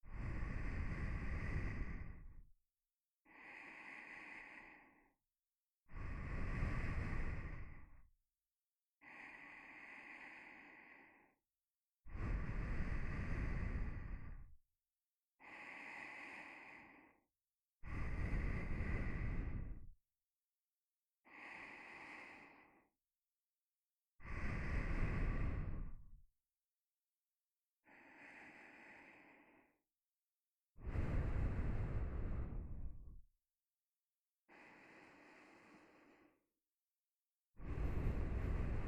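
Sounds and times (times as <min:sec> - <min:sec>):
nose breathing while lying beside: 0:00.1 - 0:02.4, 0:03.3 - 0:05.1, 0:05.9 - 0:08.0, 0:09.0 - 0:11.4, 0:12.1 - 0:14.5, 0:15.4 - 0:17.2, 0:17.8 - 0:19.9, 0:21.3 - 0:22.9, 0:24.2 - 0:26.1, 0:27.9 - 0:29.8, 0:30.8 - 0:33.0, 0:34.5 - 0:36.4, 0:37.6 - 0:38.8.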